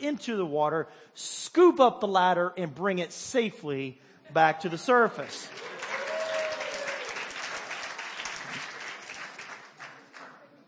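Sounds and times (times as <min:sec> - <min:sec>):
speech: 0:00.0 - 0:06.0
crowd applauding: 0:05.2 - 0:10.4.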